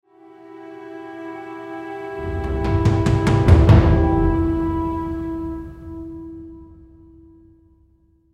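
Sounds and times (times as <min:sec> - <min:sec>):
percussion build-up: 0:02.2 - 0:06.2.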